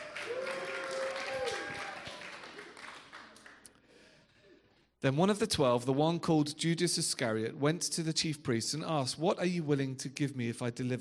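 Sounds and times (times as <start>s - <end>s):
audience cheering: 0.0s - 3.3s
audience clapping: 0.0s - 3.9s
speech: 5.0s - 10.9s.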